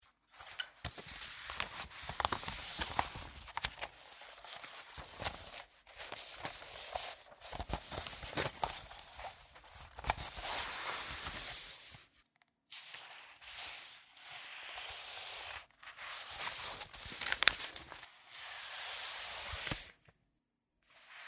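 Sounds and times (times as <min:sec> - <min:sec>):
paper pages rustling: 0:00.3 - 0:12.1, 0:14.8 - 0:18.2, 0:18.8 - 0:20.0.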